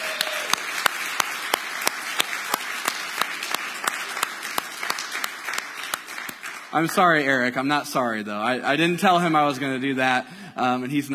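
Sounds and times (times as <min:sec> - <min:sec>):
church audience applause: 0:00.0 - 0:07.2
sharp regular claps: 0:00.0 - 0:07.4
speech: 0:06.7 - 0:11.1.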